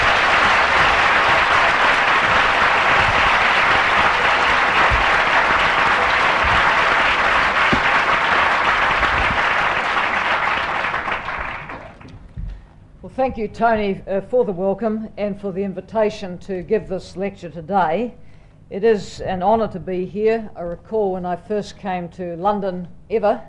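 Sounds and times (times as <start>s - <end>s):
audience applause at an LSE lecture welcoming the Prime Minister of New Zealand: 0.0s - 12.1s
speech: 13.2s - 23.4s.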